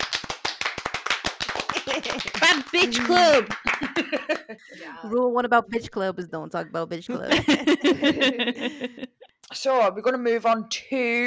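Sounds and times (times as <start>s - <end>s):
round of applause: 0.0s - 4.5s
laughter: 1.5s - 4.8s, 7.2s - 9.4s
speech: 2.0s - 11.2s.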